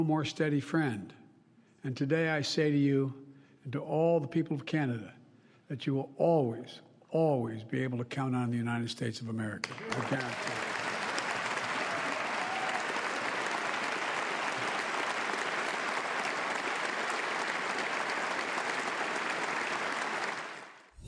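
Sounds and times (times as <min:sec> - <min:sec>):
speech: 0:00.0 - 0:01.2, 0:01.8 - 0:10.7
applause and standing ovation for the president: 0:09.6 - 0:20.9.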